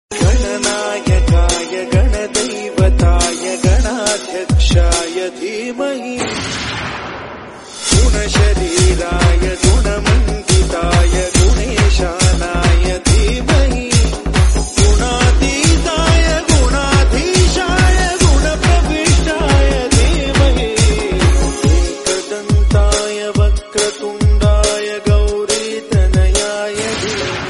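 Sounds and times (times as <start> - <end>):
Hindu devotional remix song ringtone: 0.1 - 27.4.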